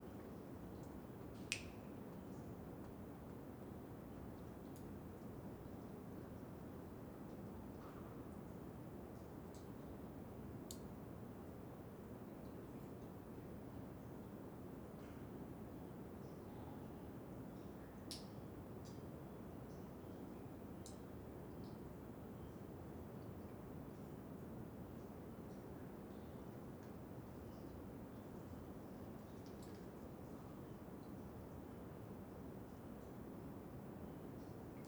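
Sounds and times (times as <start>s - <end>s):
water dripping inside the Angelica cave: 0.0s - 34.8s.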